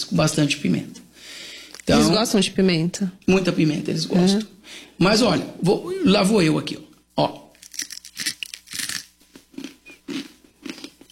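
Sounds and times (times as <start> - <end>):
speech: 0.1 - 1.0, 1.9 - 7.4
crunchy chewing of a fried snack: 7.5 - 11.1.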